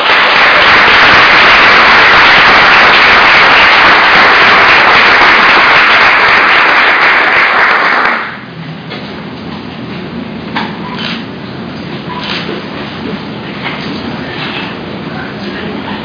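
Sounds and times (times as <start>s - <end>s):
audience applause: 0.0s - 8.5s.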